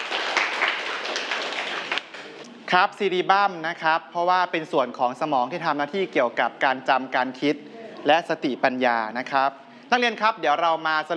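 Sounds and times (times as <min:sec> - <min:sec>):
students clapping in a classroom: 0:00.0 - 0:02.4
speech: 0:02.7 - 0:11.1.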